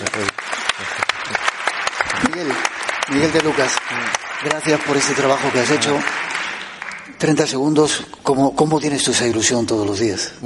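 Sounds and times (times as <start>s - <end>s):
audience applause: 0.0s - 7.6s
speech: 2.4s - 6.3s, 7.2s - 10.4s.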